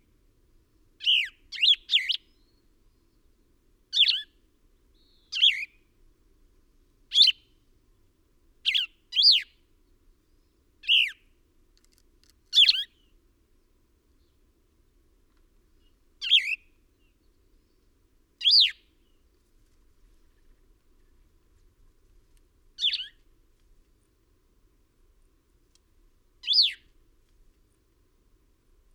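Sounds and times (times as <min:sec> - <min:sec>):
bird chirping: 0:01.0 - 0:02.7, 0:03.9 - 0:05.8, 0:07.1 - 0:07.5, 0:08.6 - 0:09.6, 0:10.4 - 0:11.2, 0:12.5 - 0:13.2, 0:15.8 - 0:17.8, 0:18.4 - 0:19.2, 0:22.8 - 0:23.2, 0:26.4 - 0:26.9.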